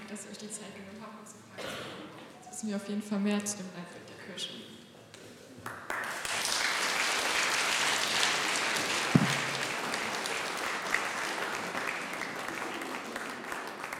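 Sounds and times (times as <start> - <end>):
speech: 0.1 - 4.8
audience applause: 5.7 - 13.9
low thump: 9.1 - 9.5.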